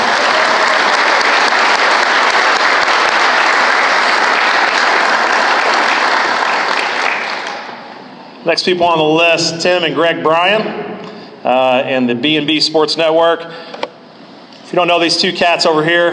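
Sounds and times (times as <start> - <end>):
audience applause: 0.0 - 7.9
speech: 8.5 - 13.7, 14.7 - 16.1.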